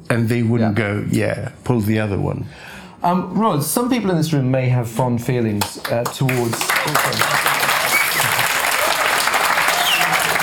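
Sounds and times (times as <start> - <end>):
speech: 0.1 - 7.4
audience applause: 6.0 - 10.4.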